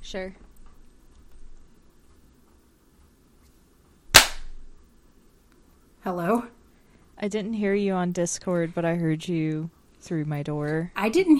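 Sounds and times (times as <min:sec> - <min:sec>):
speech: 0:00.1 - 0:00.4, 0:06.0 - 0:06.6, 0:07.2 - 0:11.3
single hand clap for sync: 0:04.2 - 0:04.5.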